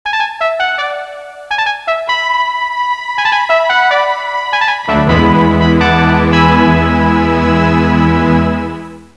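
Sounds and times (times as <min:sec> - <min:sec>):
fanfare: 0:00.1 - 0:09.1.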